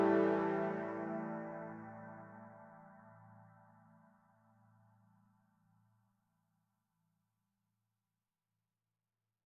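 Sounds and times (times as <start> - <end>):
game level music: 0.0 - 1.7.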